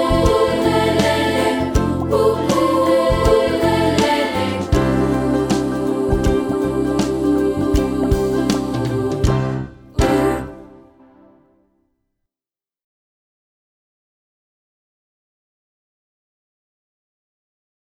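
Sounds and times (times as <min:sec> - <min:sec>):
ukulele: 0:00.0 - 0:11.1.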